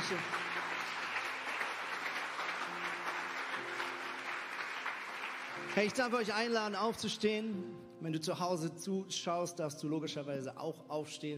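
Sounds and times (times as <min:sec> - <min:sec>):
audience applause: 0:00.0 - 0:06.5
speech: 0:00.1 - 0:00.4, 0:05.8 - 0:11.3.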